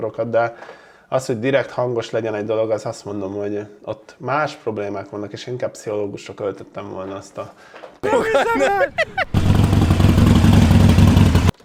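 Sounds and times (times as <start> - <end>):
speech: 0.0 - 9.5
laughter: 8.0 - 9.7
new motorcycle engine revving through loud exhaust: 9.1 - 11.5.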